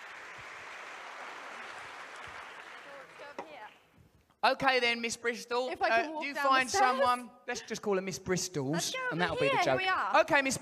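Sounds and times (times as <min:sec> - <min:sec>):
audience round of applause: 0:00.0 - 0:03.8
speech: 0:04.4 - 0:10.6.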